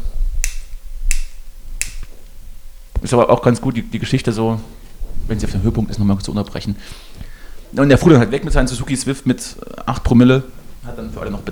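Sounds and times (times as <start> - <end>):
empty lighter clicking: 0.4 - 2.1
speech: 3.0 - 7.1, 7.7 - 11.5.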